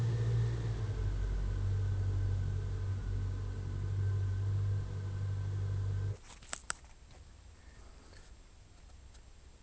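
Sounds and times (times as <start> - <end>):
BMW K 1100 LT SE motorcycle engine: 0.0 - 6.2.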